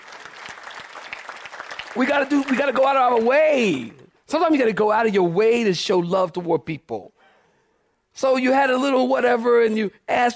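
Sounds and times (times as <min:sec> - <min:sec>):
audience clapping hands: 0:00.0 - 0:04.0
speech: 0:02.0 - 0:07.2, 0:08.2 - 0:10.3.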